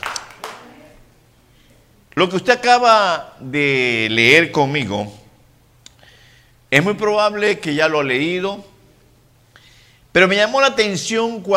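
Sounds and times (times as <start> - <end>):
audience applauding: 0.0 - 0.8
speech: 2.2 - 5.2, 6.7 - 8.7, 10.1 - 11.5.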